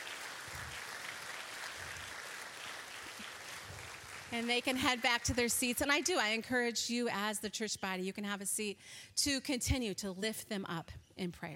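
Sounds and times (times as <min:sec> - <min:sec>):
audience applause: 0:00.0 - 0:05.7
speech: 0:04.3 - 0:11.5.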